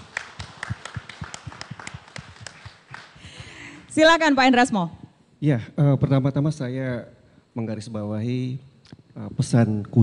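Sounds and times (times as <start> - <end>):
audience applause: 0.0 - 3.3
speech: 4.0 - 10.0.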